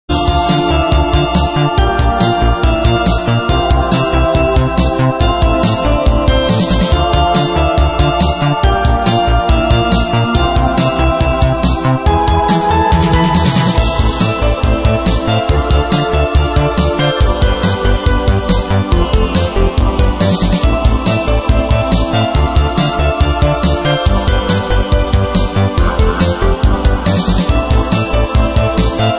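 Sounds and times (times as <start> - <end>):
piano: 0.1 - 29.1.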